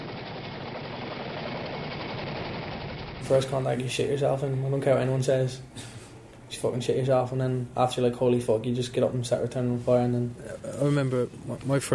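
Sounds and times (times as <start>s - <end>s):
Chinook helicopter arriving: 0.0s - 11.2s
speech: 3.2s - 11.9s.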